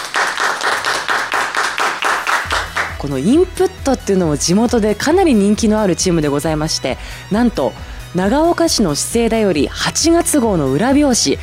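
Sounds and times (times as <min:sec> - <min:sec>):
applause: 0:00.0 - 0:03.2
speech: 0:03.0 - 0:11.4.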